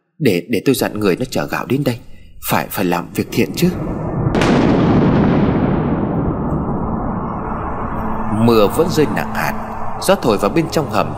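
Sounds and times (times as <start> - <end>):
speech: 0.2 - 4.0, 8.4 - 11.1
loud thunderclap of a lightning strike on a pomelo tree: 1.1 - 9.9.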